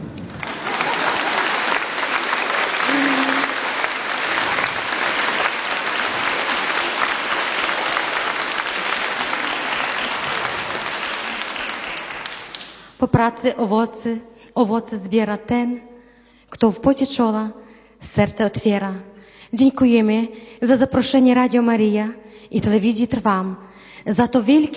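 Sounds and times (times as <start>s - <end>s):
audience applause: 0.1s - 12.9s
speech: 13.0s - 15.9s, 16.5s - 24.7s.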